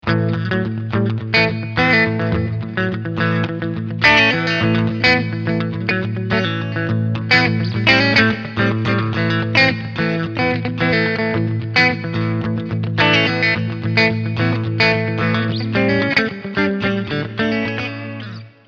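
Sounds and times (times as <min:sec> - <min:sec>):
clean electric guitar with both pickups in single-coil mode: 0:00.0 - 0:18.6.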